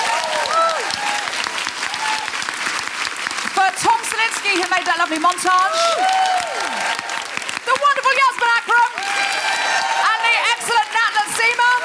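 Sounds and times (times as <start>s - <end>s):
audience applause at the BFI: 0.0s - 11.8s
speech: 4.4s - 6.4s.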